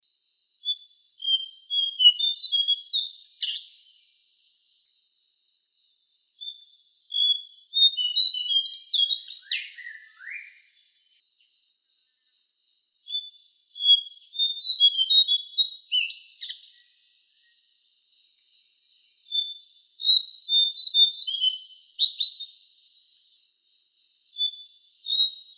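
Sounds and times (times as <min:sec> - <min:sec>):
lesser shortwing singing: 0:00.6 - 0:03.8, 0:06.4 - 0:11.2, 0:13.1 - 0:17.7, 0:19.3 - 0:22.6.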